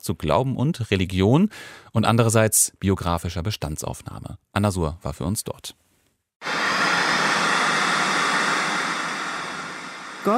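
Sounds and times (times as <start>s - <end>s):
speech: 0.0s - 5.8s
white noise from a sound installation: 6.4s - 10.3s.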